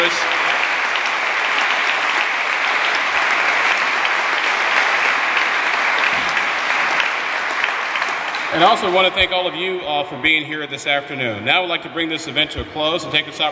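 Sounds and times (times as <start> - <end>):
round of applause: 0.0 - 9.7
speech: 8.6 - 13.5.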